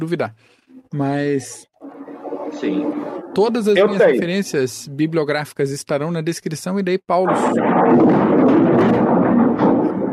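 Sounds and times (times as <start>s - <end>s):
speech: 0.0s - 1.7s, 2.5s - 9.2s
thunder rumbling: 1.8s - 4.0s, 7.3s - 10.1s.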